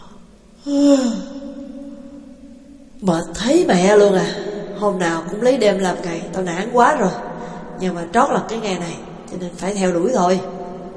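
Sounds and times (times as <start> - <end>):
speech: 0.6 - 1.3, 3.0 - 10.6
person yawning: 0.6 - 1.4.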